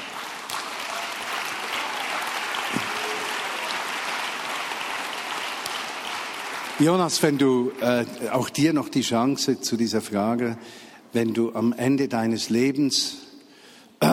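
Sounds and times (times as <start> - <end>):
audience applause: 0.0 - 8.2
speech: 6.8 - 13.3.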